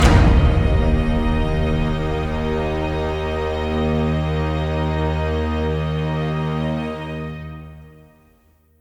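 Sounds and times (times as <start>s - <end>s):
ambient combat end music: 0.0s - 6.8s.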